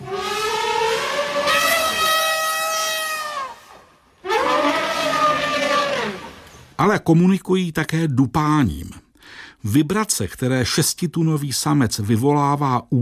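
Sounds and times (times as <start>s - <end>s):
elephant trumpeting through its trunk: 0.0s - 6.7s
speech: 6.8s - 13.0s.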